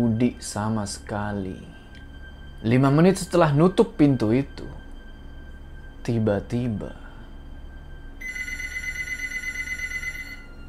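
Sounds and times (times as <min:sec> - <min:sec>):
speech: 0:00.0 - 0:01.8, 0:02.6 - 0:04.8, 0:06.0 - 0:07.0
low hum: 0:00.0 - 0:10.6
telephone ringing for an incoming call: 0:08.2 - 0:10.6.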